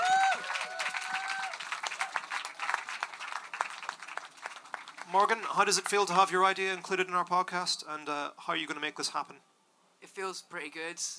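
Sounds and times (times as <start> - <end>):
audience applause: 0.0 - 6.3
speech: 5.1 - 9.5, 10.2 - 11.1.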